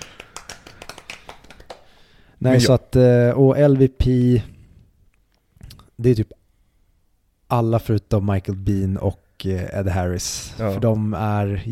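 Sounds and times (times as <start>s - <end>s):
hand clapping from a small group: 0.0s - 2.0s
speech: 2.4s - 4.6s, 6.0s - 6.4s, 7.5s - 11.7s.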